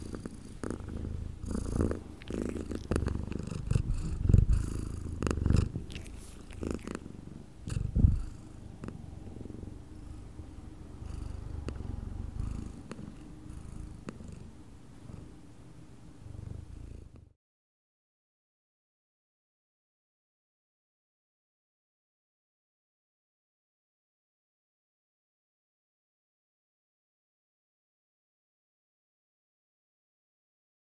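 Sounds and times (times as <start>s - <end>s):
cat purring: 0.0s - 17.4s.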